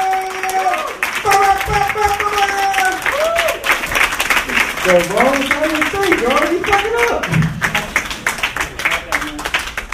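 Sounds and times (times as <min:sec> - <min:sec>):
people whooping and cheering: 0:00.0 - 0:03.9
stand-up comedy audience applause: 0:00.0 - 0:09.9
speech: 0:04.9 - 0:07.4.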